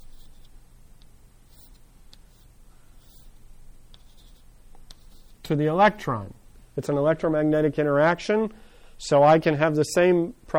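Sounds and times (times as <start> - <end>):
chalk scratching on a board drawing a diagram: 0.0 - 0.6, 1.4 - 5.5
speech: 5.5 - 10.5.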